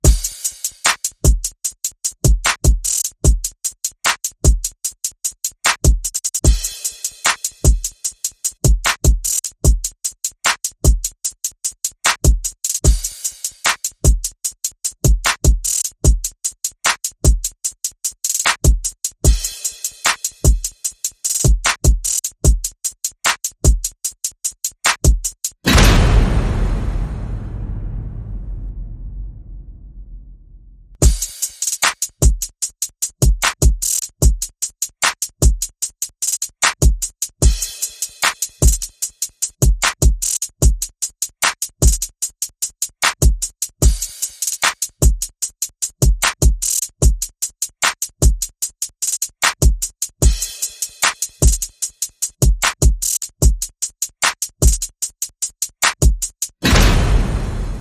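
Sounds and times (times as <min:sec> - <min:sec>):
percussion: 0:00.0 - 0:57.8
sound effects: 0:25.7 - 0:30.8.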